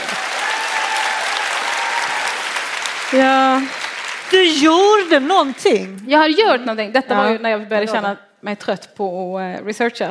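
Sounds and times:
audience applause: 0:00.0 - 0:06.1
speech: 0:03.1 - 0:10.0.

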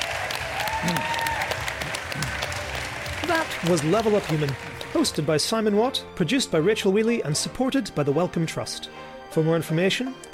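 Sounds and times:
audience applause at the Glastonbury Festival: 0:00.0 - 0:05.4
speech: 0:00.8 - 0:01.3, 0:03.4 - 0:10.3.

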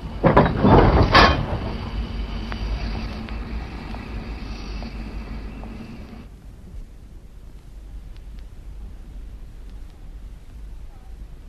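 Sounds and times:
train sliding into station platform: 0:00.0 - 0:06.3.

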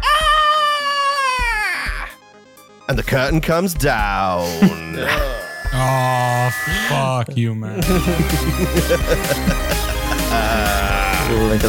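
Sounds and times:
blood-curdling scream: 0:00.0 - 0:02.1, 0:04.8 - 0:07.1
speech: 0:02.9 - 0:11.6
laughter: 0:04.4 - 0:11.6.

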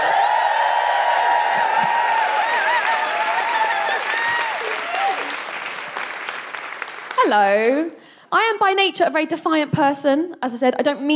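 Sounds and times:
audience cheering: 0:00.0 - 0:07.4
applause: 0:00.0 - 0:07.9
speech: 0:07.3 - 0:11.1.

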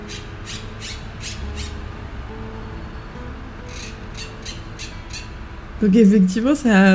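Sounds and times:
green parakeets squawking: 0:00.0 - 0:01.9, 0:03.6 - 0:05.4
speech: 0:05.8 - 0:06.9.

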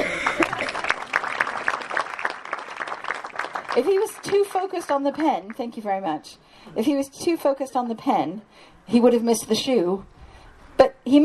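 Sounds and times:
crowd clapping: 0:00.0 - 0:05.6
speech: 0:03.8 - 0:10.2, 0:10.8 - 0:11.2.

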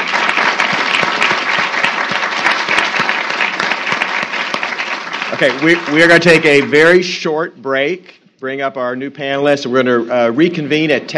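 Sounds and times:
audience applause for panelists: 0:00.0 - 0:07.0
speech: 0:05.4 - 0:11.1.

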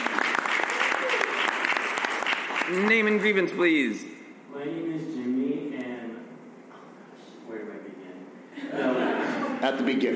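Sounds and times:
crowd applauding: 0:00.0 - 0:03.4
speech: 0:02.7 - 0:05.3, 0:09.6 - 0:10.1
laughter: 0:08.6 - 0:10.0.

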